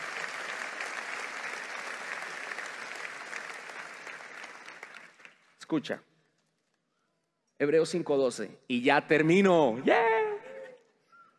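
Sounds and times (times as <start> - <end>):
audience applause: 0.0 - 5.4
speech: 5.7 - 6.1, 7.6 - 10.1.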